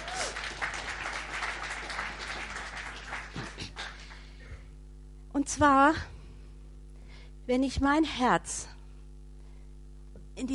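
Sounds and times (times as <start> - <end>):
audience applause: 0.0 - 4.3
speech: 5.4 - 6.1, 7.5 - 8.7, 10.4 - 10.5.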